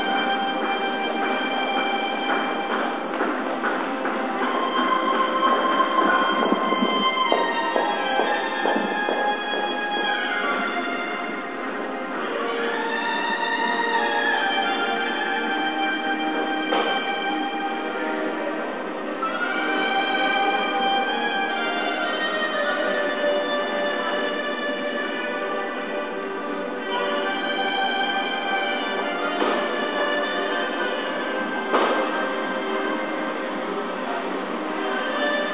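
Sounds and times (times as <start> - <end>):
saxophone: 0.0 - 35.5.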